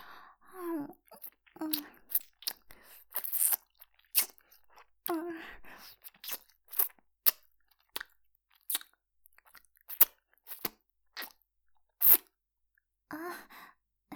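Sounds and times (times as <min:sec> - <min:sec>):
soft breathy vocal sighs: 0:00.0 - 0:00.8
wet licking and nibbling on an earlobe: 0:01.1 - 0:04.9, 0:05.8 - 0:11.4, 0:12.0 - 0:12.3.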